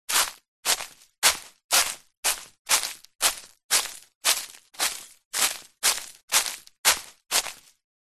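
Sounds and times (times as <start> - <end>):
footsteps in soft shoes on dry leaves in a forest: 0.1 - 7.8.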